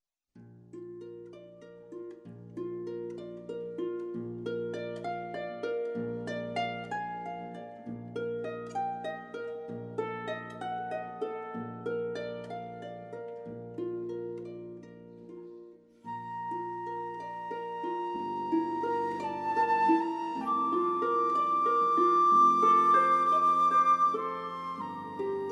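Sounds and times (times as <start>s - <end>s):
harp: 0.4s - 25.5s
flute: 16.0s - 25.5s.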